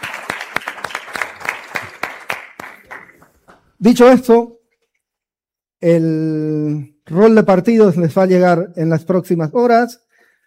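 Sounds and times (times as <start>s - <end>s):
audience applause: 0.0s - 3.5s
speech: 3.8s - 4.6s, 5.8s - 10.0s.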